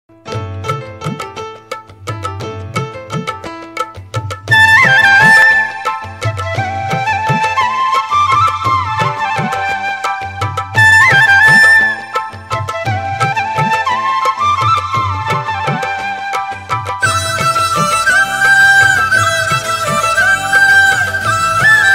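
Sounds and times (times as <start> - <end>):
flute background music ringtone: 4.5 - 21.9.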